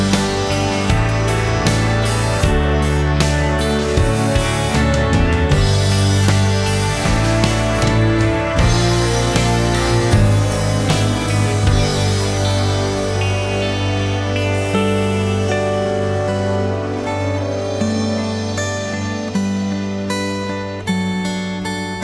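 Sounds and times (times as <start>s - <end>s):
instrumental music: 0.0s - 22.0s.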